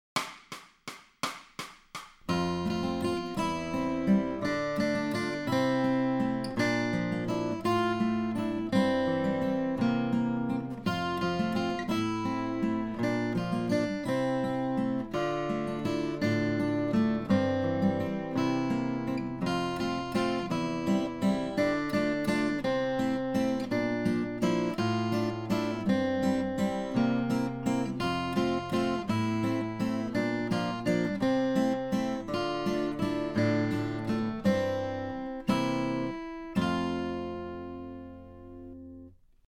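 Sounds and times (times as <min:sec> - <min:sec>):
acoustic guitar accompaniment: 0:02.2 - 0:39.4.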